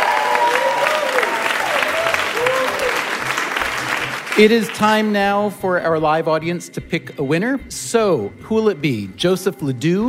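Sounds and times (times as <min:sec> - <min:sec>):
live audience applause: 0:00.0 - 0:05.1
speech: 0:04.4 - 0:10.0.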